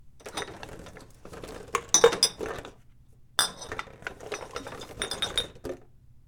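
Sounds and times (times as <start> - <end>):
bottles and cans: 0.2 - 2.7, 3.4 - 5.8.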